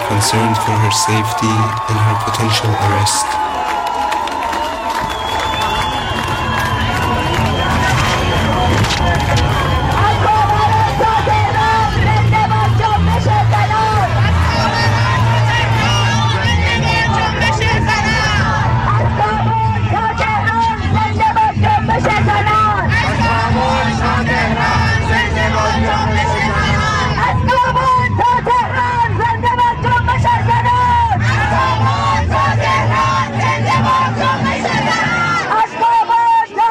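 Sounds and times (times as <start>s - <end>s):
large crowd cheering and shouting at an airport: 0.0s - 36.6s
speech: 0.1s - 3.8s
whistles: 4.8s - 10.2s.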